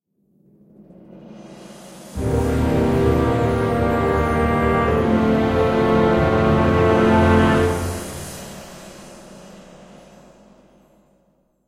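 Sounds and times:
caught booze stinger: 0:02.1 - 0:10.8.

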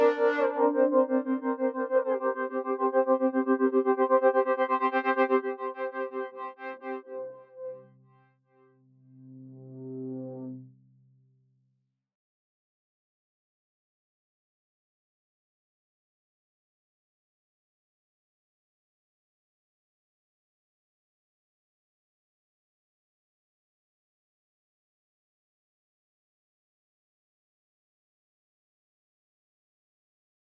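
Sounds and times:
synths and pads: 0:00.0 - 0:07.8.

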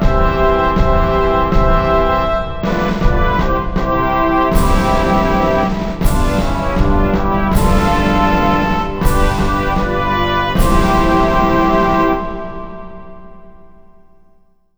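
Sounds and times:
national anthem: 0:00.0 - 0:13.8.

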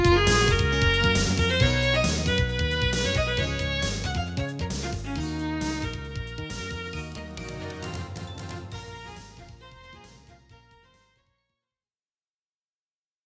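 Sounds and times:
battle music: 0:00.0 - 0:10.6.

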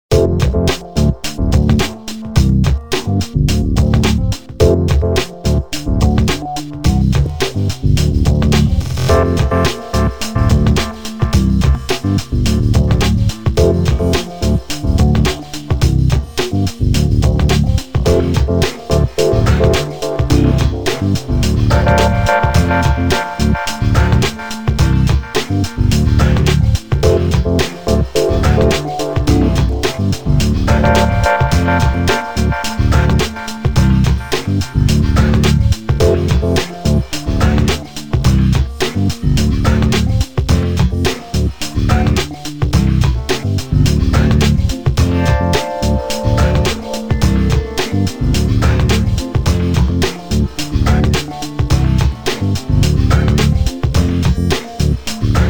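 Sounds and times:
music bar: 0:00.1 - 0:55.4.

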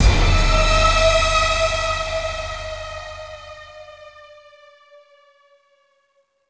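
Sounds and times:
music sting: 0:00.0 - 0:03.9.

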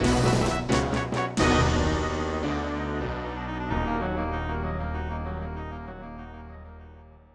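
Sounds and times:
fanfare on Roland SC 55: 0:00.0 - 0:04.4.

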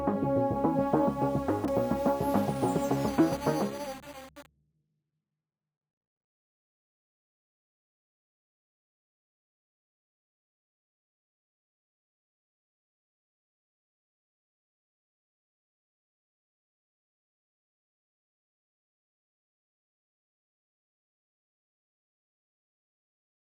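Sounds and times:
synths: 0:00.0 - 0:04.5.

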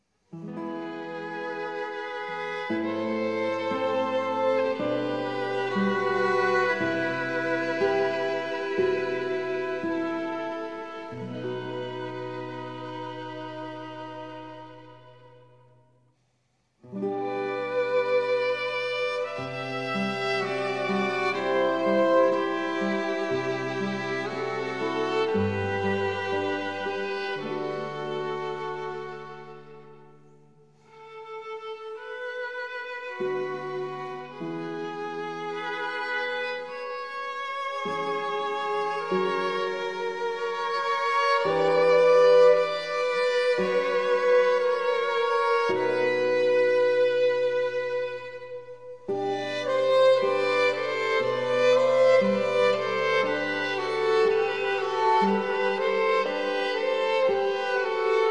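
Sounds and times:
slow baroque trio piece in E minor: 0:00.0 - 0:58.3.

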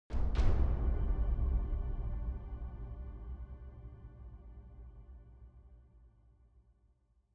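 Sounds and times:
big drums: 0:00.1 - 0:03.6.

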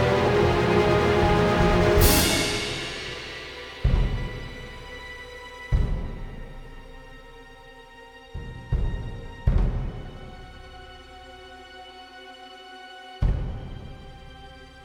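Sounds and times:
ambient fight theme music: 0:00.0 - 0:11.3.

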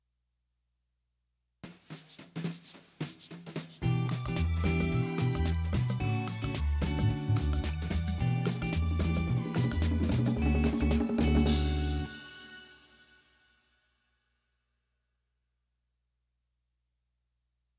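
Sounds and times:
ten-second count music: 0:03.8 - 0:12.7.

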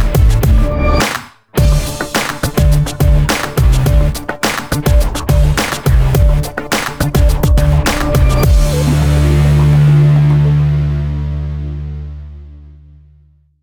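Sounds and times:
rhythm: 0:00.0 - 0:10.8.

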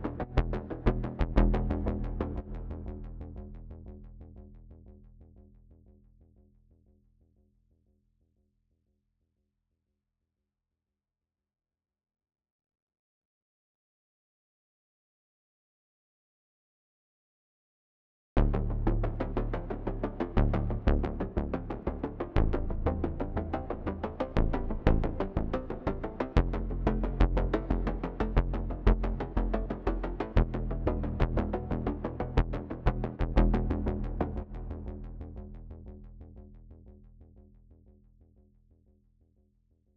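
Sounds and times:
bass: 0:00.0 - 0:07.4, 0:18.4 - 0:39.5.

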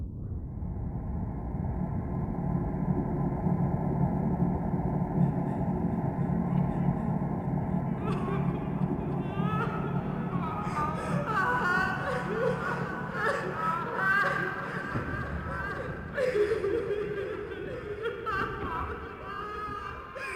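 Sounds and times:
spectral ambience: 0:00.0 - 0:20.3
laughter: 0:05.2 - 0:20.3.

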